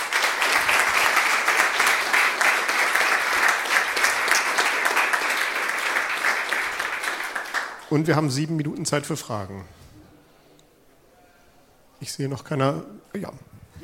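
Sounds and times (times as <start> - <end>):
audience applause: 0.0 - 8.0
speech: 7.9 - 9.8, 12.0 - 13.5.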